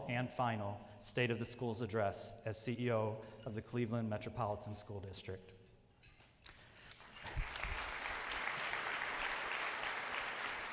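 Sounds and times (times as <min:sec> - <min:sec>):
speech: 0:00.1 - 0:05.6
audience applause: 0:07.0 - 0:10.7.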